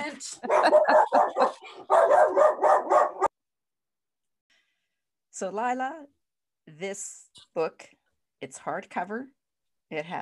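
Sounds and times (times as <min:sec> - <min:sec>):
laughter: 0:00.0 - 0:01.8
speech: 0:00.1 - 0:00.8, 0:05.4 - 0:06.2, 0:06.8 - 0:10.2
dog barking: 0:00.4 - 0:03.3.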